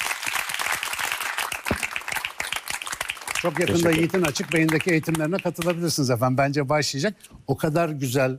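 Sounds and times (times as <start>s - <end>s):
applause: 0.0s - 6.0s
speech: 3.4s - 8.3s.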